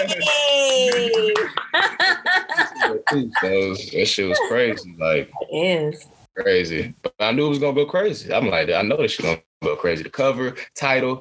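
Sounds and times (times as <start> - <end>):
laughter: 0.0 - 5.0
hand clap: 0.1 - 1.8
speech: 3.1 - 11.1.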